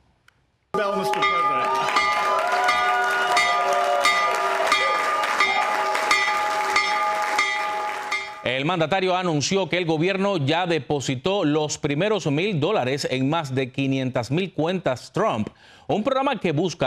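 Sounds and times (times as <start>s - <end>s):
Wall Street opening bell ringing: 0.8s - 8.6s
speech: 8.6s - 16.8s.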